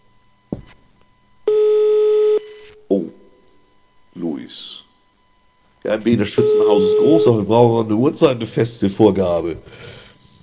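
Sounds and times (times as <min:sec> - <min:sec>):
telephone ringback tone: 0:01.5 - 0:02.6, 0:06.3 - 0:07.4
speech: 0:06.0 - 0:09.9.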